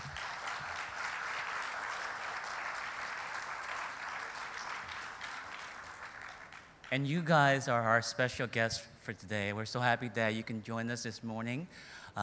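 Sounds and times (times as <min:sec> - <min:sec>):
audience applause: 0:00.0 - 0:06.9
speech: 0:06.9 - 0:12.2.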